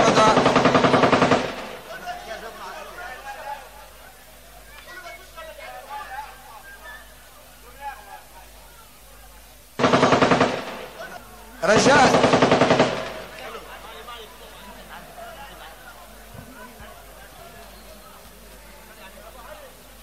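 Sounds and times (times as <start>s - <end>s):
automatic gunfire bursts at a gathering of guests: 0.0s - 1.9s, 9.8s - 13.7s.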